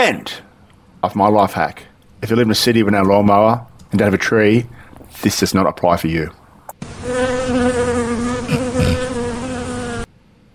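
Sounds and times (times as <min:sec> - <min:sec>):
speech: 0:00.0 - 0:00.4, 0:01.0 - 0:07.6
fly buzzing: 0:06.7 - 0:10.1.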